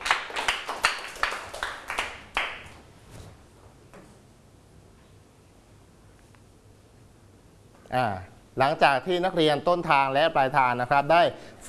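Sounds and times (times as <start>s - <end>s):
students clapping for a classmate: 0.0s - 2.8s
speech: 7.9s - 11.6s.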